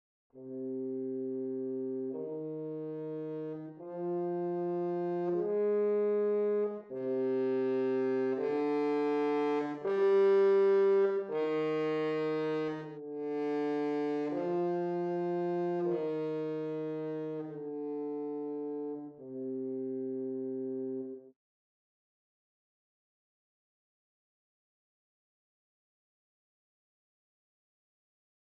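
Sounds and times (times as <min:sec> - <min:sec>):
horn: 0:00.4 - 0:21.3.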